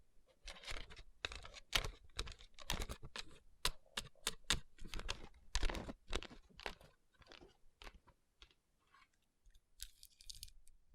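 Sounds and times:
tapping and rubbing rhinestone covered palms: 0.5s - 8.6s.

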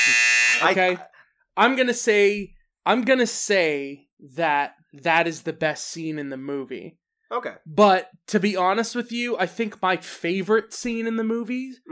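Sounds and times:
loud harsh electronic buzzer: 0.0s - 0.8s
speech: 0.1s - 11.9s.

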